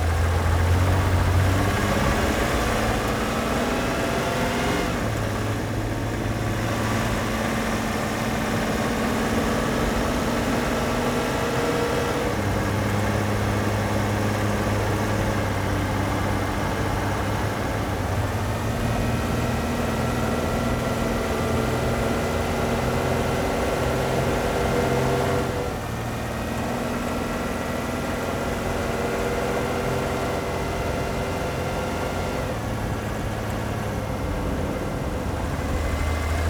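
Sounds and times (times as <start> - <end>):
van driving: 0.0 - 36.4.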